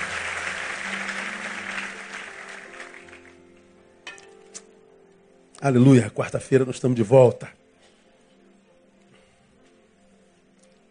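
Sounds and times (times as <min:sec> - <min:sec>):
audience applause: 0:00.0 - 0:03.6
speech: 0:05.6 - 0:07.6.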